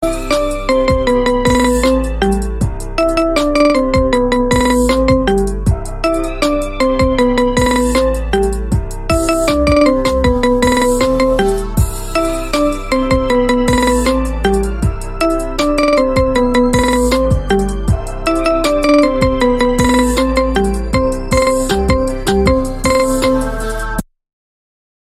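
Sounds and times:
marimba: 0.0 - 24.0.

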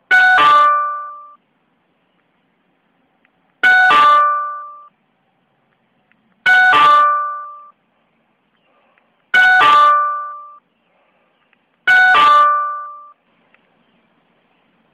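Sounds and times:
doorbell ringing: 3.6 - 4.9, 6.5 - 7.7, 9.4 - 10.6, 11.9 - 13.1.

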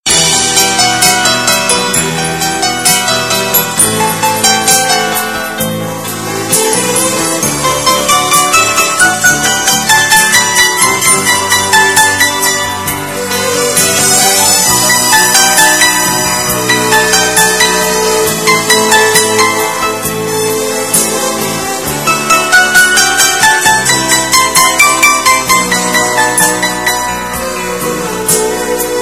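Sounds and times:
soulful piano: 0.1 - 29.0.

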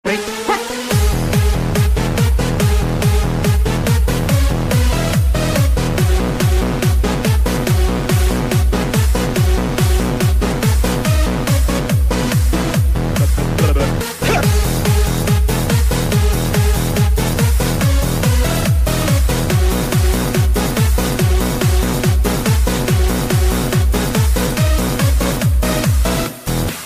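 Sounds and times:
rave music mix: 0.0 - 26.8.

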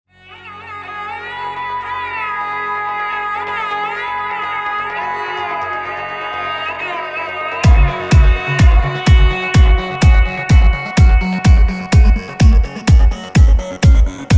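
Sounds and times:
tone: 7.6 - 14.3.

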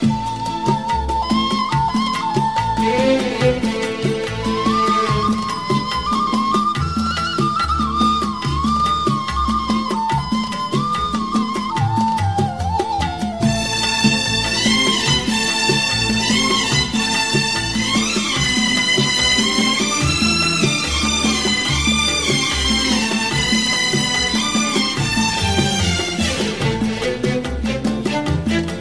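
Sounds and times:
classical music: 0.0 - 28.7.

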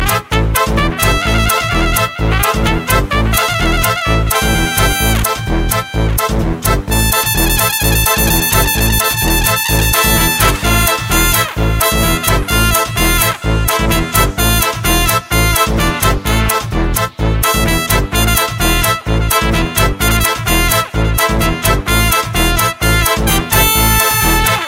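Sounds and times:
trumpet: 0.0 - 24.6.

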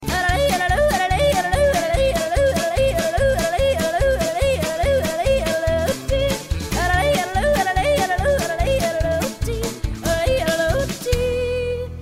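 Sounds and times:
girl yodeling: 0.1 - 11.9.

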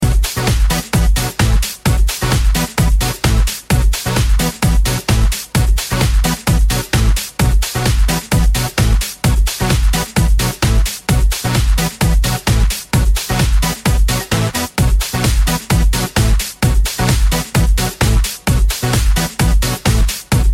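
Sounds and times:
electronic music: 0.0 - 20.5.

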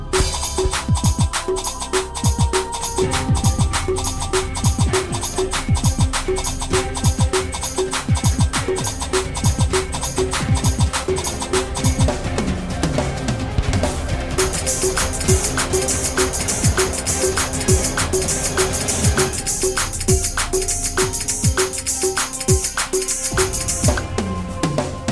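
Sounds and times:
breakbeat mix: 0.2 - 25.0.

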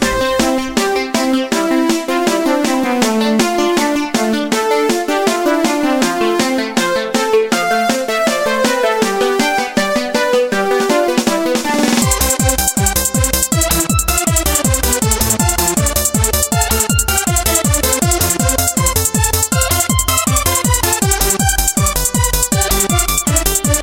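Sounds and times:
happy melody: 0.0 - 23.8.

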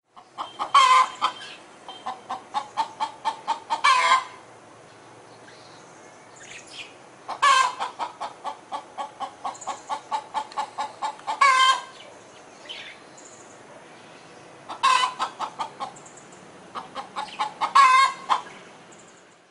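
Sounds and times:
birds: 0.1 - 19.4
hen: 0.2 - 4.4, 7.3 - 12.1, 14.7 - 16.0, 16.7 - 18.6.

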